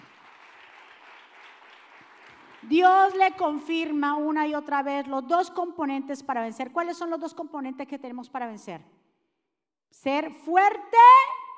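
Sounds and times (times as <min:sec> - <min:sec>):
loud applause from a crowd: 0:00.0 - 0:02.7
speech: 0:02.6 - 0:09.0, 0:10.0 - 0:11.3.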